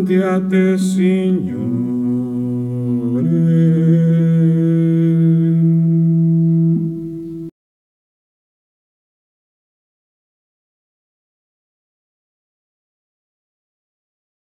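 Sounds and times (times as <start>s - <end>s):
men singing: 0.0s - 5.9s.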